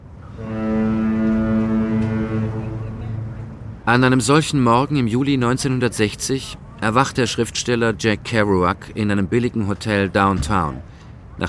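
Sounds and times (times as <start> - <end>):
ship's foghorn blast in San Francisco fog: 0.2 - 4.2
speech: 3.9 - 11.4.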